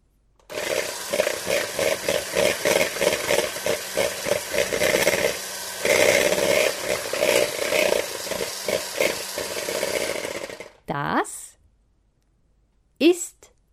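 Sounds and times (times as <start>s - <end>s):
electric kitchen mixer whirring: 0.5s - 10.9s.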